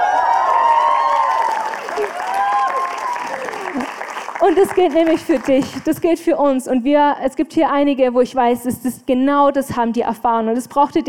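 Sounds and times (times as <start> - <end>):
crowd cheering: 0.0 - 5.9
speech: 4.5 - 11.0.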